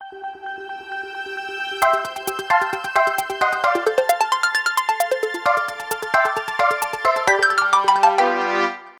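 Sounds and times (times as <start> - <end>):
jingle: 1.8 - 8.9.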